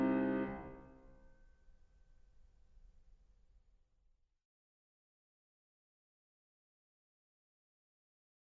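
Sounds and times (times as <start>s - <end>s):
baroque keyboard partita: 0.0s - 0.8s.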